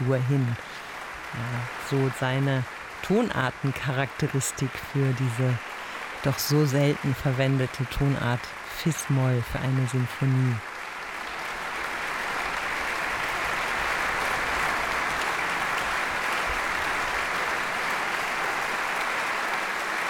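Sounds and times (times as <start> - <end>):
concert audience applause for an orchestra: 0.0 - 20.0
speech: 0.1 - 10.7.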